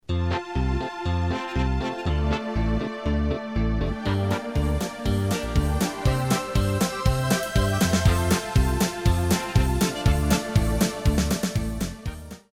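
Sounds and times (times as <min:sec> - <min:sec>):
polka music: 0:00.0 - 0:12.5.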